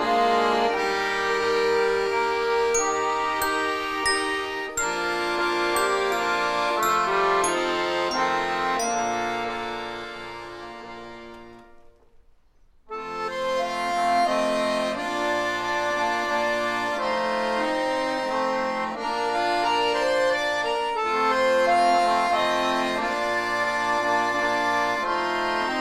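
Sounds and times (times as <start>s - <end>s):
accordion ensemble playing a prelude: 0.0s - 11.9s, 12.9s - 25.7s.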